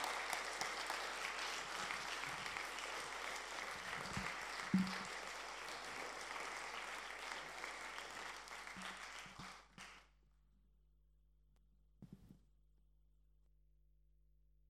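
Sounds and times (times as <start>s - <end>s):
audience applause: 0.0s - 10.1s.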